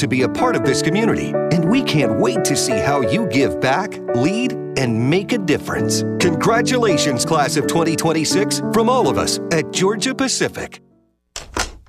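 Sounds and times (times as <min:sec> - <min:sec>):
speech: 0:00.0 - 0:10.9
door lock clicking shut: 0:11.4 - 0:11.8.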